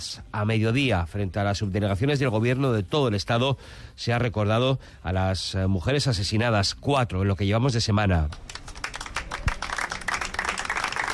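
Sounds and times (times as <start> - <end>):
speech: 0.0 - 8.6
applause ending a minute of silence in Bilbao: 8.3 - 11.1.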